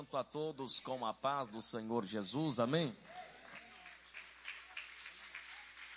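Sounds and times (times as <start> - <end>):
speech: 0.0 - 3.4
crowd applauding: 3.0 - 5.9.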